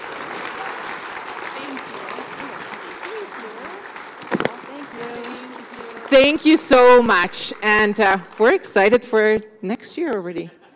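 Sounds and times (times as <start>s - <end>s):
audience clapping: 0.0s - 9.4s
speech: 6.1s - 10.6s.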